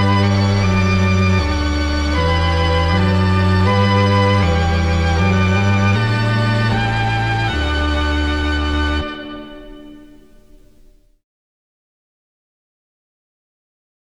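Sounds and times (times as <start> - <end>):
organ: 0.0 - 11.1.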